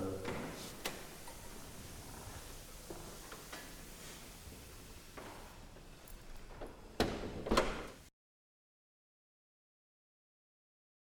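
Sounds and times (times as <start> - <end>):
background noise: 0.0 - 8.1.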